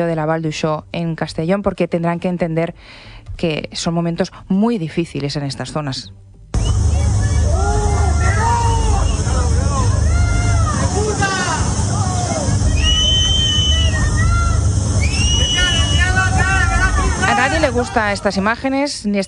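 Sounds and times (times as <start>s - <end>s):
speech: 0.0s - 6.2s, 17.7s - 19.2s
angry residents shouting at a politician: 6.9s - 18.6s.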